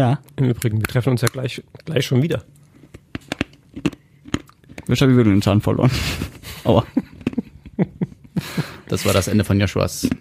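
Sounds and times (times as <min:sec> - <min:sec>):
speech: 0:00.0 - 0:02.6, 0:04.9 - 0:07.0, 0:08.9 - 0:10.1
wet mouth smacking and chewing: 0:02.6 - 0:04.9, 0:07.1 - 0:07.6
laughter: 0:05.8 - 0:09.2.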